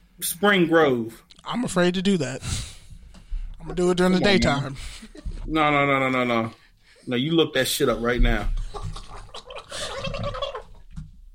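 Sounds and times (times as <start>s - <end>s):
speech: 0.2s - 2.7s, 3.6s - 8.6s
gargling water while laughing: 8.6s - 10.9s.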